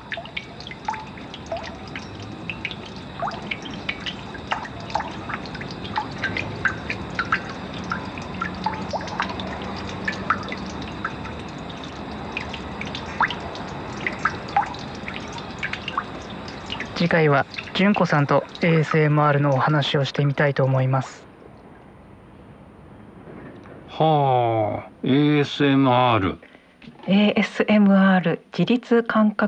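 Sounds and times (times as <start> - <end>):
rain gutter dripping at Tohoku University Faculty of Agriculture: 0.0 - 21.9
speech: 17.0 - 21.3, 24.0 - 26.5, 27.1 - 29.4.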